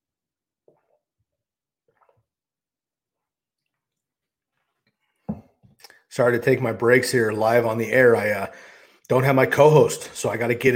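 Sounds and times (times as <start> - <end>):
sipping a drink: 0.6 - 6.1
speech: 6.2 - 10.7.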